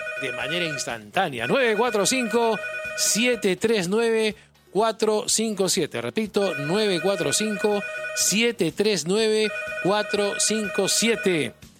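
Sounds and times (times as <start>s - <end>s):
telephone ringing for an incoming call on a call-in program: 0.0s - 3.5s, 6.5s - 8.5s, 9.3s - 11.5s
speech: 0.2s - 11.7s.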